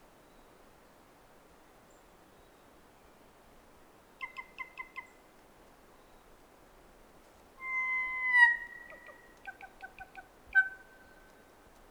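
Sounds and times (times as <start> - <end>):
kōkako singing: 7.6 - 9.3.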